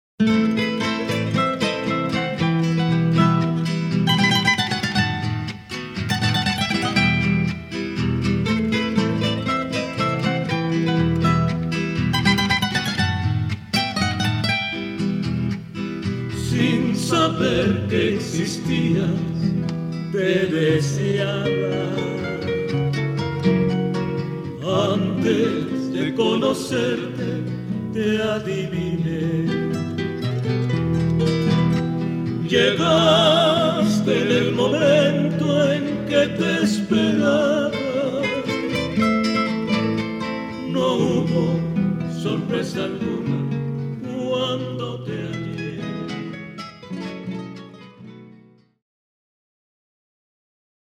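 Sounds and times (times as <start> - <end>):
romantic trio music: 0.2 - 48.7.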